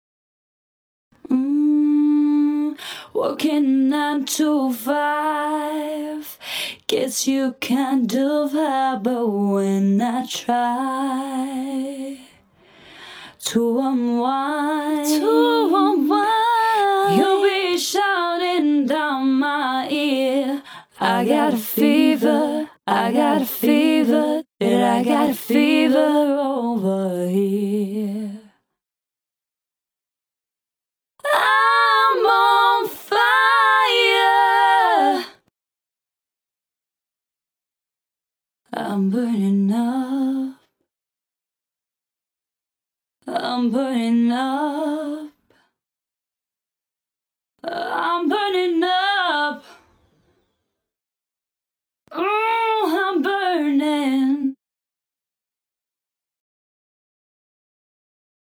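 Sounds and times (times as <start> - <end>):
vocals: 1.2 - 28.7, 31.2 - 35.5, 38.7 - 40.8, 43.2 - 45.7, 47.6 - 50.1, 52.1 - 54.6.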